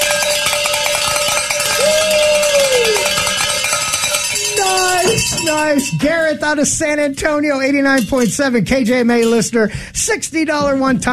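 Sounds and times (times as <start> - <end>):
handbell ringing for a pledge: 0.0 - 6.3
speech: 5.6 - 11.1.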